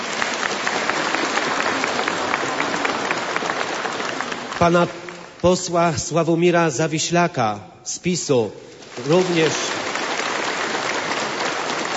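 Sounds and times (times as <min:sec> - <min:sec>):
applause: 0:00.0 - 0:05.4, 0:08.8 - 0:11.9
speech: 0:04.6 - 0:09.7.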